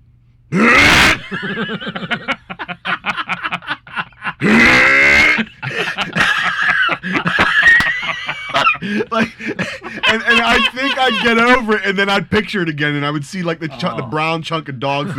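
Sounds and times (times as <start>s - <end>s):
voice imitating gagging and dry heaving: 0.6s - 1.3s, 4.4s - 5.5s
laughter: 0.9s - 12.5s, 13.6s - 15.1s
speech: 1.3s - 2.3s, 10.4s - 15.1s.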